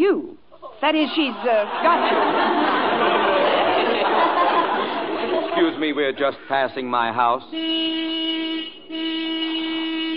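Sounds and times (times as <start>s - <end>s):
speech: 0.8s - 2.8s, 5.8s - 8.2s
laughter: 1.1s - 6.0s
car horn honking: 7.4s - 10.1s.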